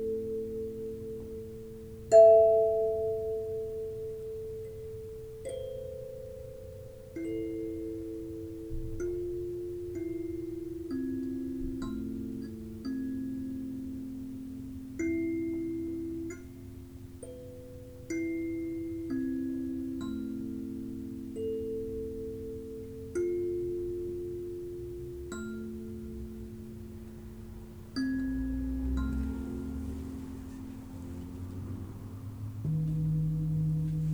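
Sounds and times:
singing bowls ringing: 0:00.0 - 0:34.1
low murmur: 0:26.2 - 0:34.1.

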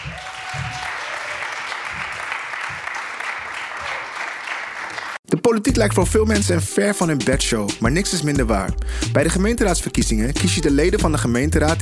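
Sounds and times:
warm applause from audience: 0:00.0 - 0:05.2
speech: 0:05.4 - 0:11.7.

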